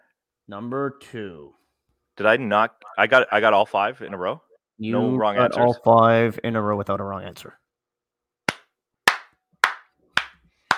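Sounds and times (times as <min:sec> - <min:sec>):
speech: 0:00.5 - 0:01.6, 0:02.2 - 0:07.6
polite golf clap: 0:08.5 - 0:10.7.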